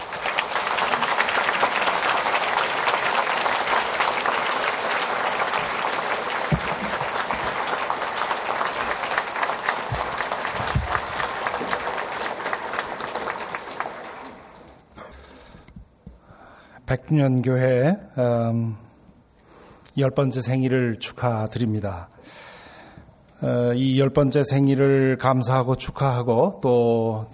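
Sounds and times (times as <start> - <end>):
audience applauding in welcome: 0.0 - 15.5
speech: 17.1 - 18.8, 20.0 - 22.1, 23.4 - 27.3.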